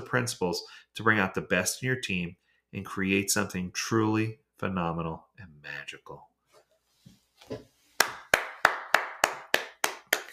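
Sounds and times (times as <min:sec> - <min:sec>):
speech: 0:00.1 - 0:06.3, 0:07.4 - 0:07.7
hands clapping: 0:08.0 - 0:10.3.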